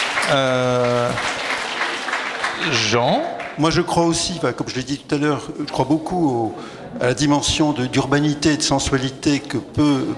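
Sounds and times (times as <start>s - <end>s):
audience applause at a panel discussion: 0.0s - 3.7s
speech: 0.3s - 1.3s, 2.6s - 10.1s.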